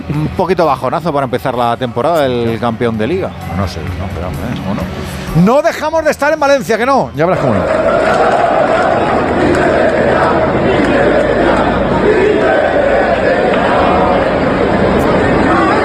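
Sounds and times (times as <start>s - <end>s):
speech: 0.1s - 8.4s
stadium crowd shouting in indignation: 7.2s - 15.8s.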